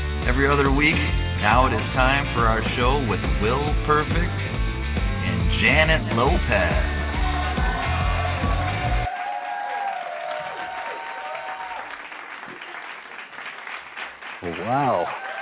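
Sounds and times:
speech: 0.3 - 4.6, 5.6 - 6.9, 14.7 - 15.2
large crowd applause: 6.3 - 15.4.

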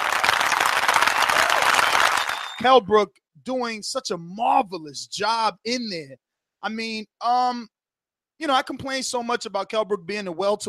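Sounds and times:
applause sound effect: 0.0 - 2.7
speech: 2.6 - 7.8, 8.4 - 10.6.

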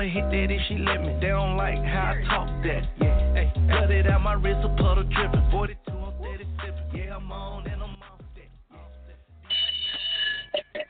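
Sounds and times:
speech: 0.0 - 5.8
bell ringing: 9.5 - 10.8.

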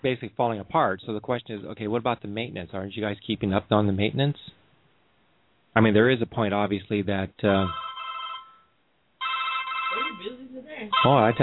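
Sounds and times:
speech: 0.0 - 4.6, 5.8 - 7.8, 10.8 - 11.4
telephone ringing: 7.6 - 11.4.

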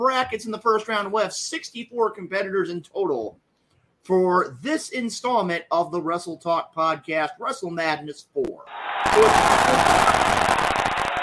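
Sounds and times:
speech: 0.0 - 3.4, 4.0 - 10.5
applause: 8.7 - 11.2.

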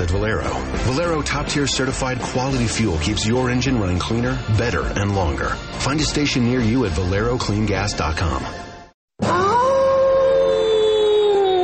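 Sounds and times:
speech: 0.0 - 8.6
werewolf howling: 9.2 - 11.6.

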